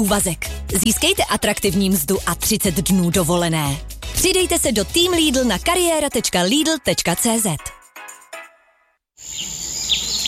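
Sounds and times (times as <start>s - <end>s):
speech: 0.0s - 7.8s
birdsong: 9.2s - 10.2s
forest ambience: 9.2s - 10.2s.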